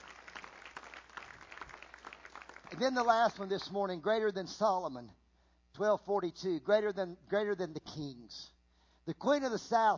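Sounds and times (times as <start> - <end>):
faint clapping from a church congregation during a sermon: 0.0 - 3.2
speech: 2.7 - 5.2, 5.8 - 9.9.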